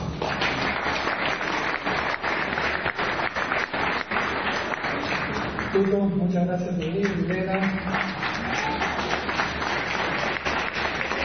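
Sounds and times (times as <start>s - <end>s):
audience applause: 0.0s - 6.0s, 7.0s - 11.2s
speech: 5.7s - 8.7s.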